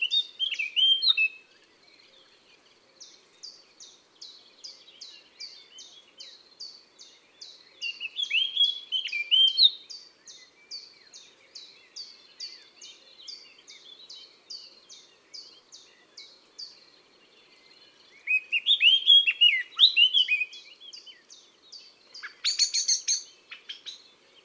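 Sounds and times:
common blackbird singing in woods and forests: 0.0 - 1.4, 3.0 - 16.8, 17.6 - 24.4.

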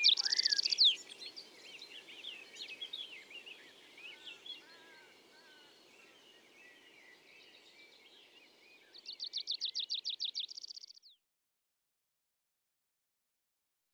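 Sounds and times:
tree pipit singing in Isère: 0.0 - 11.0.

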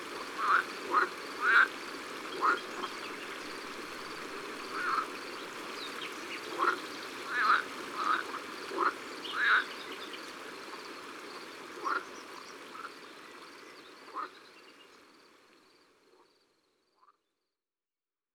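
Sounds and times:
green frogs croaking at night in Lalevade d'Ardeche: 0.2 - 17.2.

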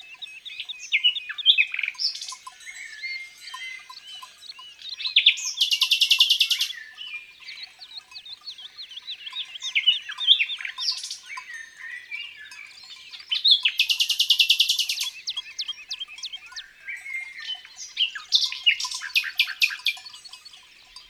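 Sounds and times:
Rossignol philomele nightingale singing: 0.0 - 21.0.

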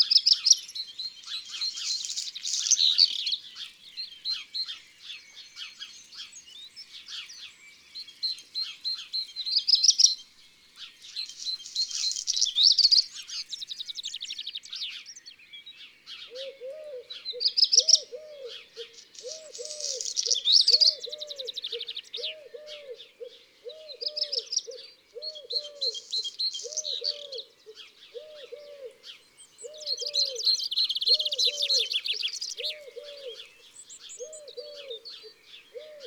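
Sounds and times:
small birds twittering and trilling: 0.0 - 36.0
Eurasian Collared Dove cooing: 16.3 - 36.0.

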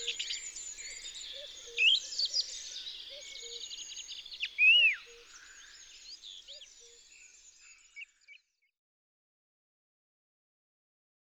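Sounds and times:
song thrush in Isere: 0.0 - 8.4.

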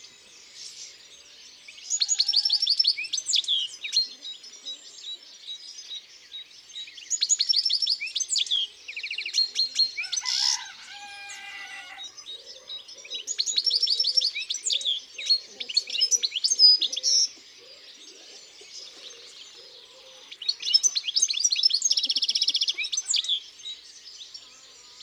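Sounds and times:
European goldfinch twittering song: 0.0 - 25.0
rooster crowing: 10.0 - 12.2.

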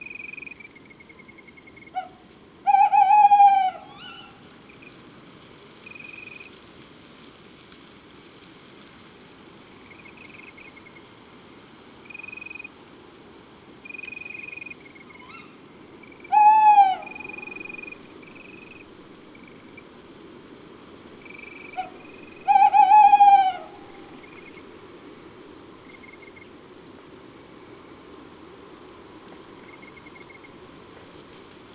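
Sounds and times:
tawny owls hooting: 2.0 - 4.4, 16.2 - 18.8, 21.2 - 24.6.

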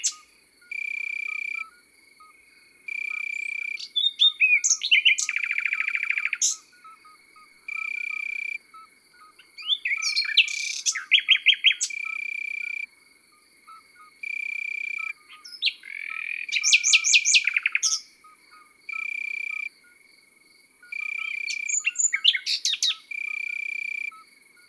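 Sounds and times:
common nightingale singing in the countryside: 0.0 - 12.9, 13.6 - 20.0, 20.8 - 24.6
birds singing in the countryside: 3.1 - 12.2, 14.9 - 18.1, 21.0 - 23.5.

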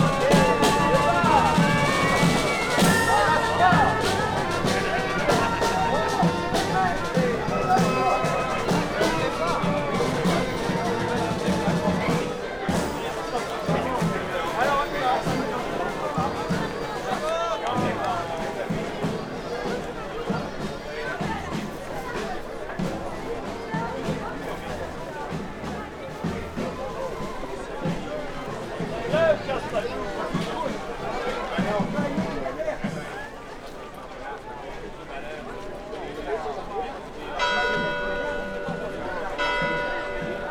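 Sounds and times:
brass band playing at a chestnut festival in Ardeche: 0.0 - 17.0
chestnut festival ambience in Ardeche: 0.0 - 40.4.

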